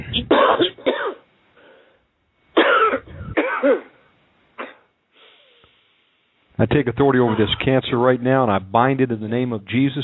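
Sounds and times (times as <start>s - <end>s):
deep cough: 0.3s - 1.2s, 2.6s - 4.0s, 4.6s - 4.9s, 7.2s - 7.8s
speech: 6.6s - 10.0s.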